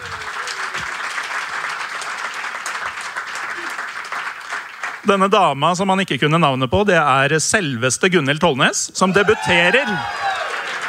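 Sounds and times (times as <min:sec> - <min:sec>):
audience applause: 0:00.0 - 0:05.0, 0:09.1 - 0:10.8
speech: 0:05.0 - 0:10.3.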